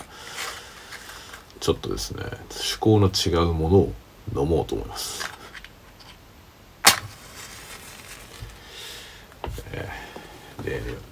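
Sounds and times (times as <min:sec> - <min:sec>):
speech: 0:01.6 - 0:05.2
match struck to light an alcohol lamp: 0:06.8 - 0:09.0.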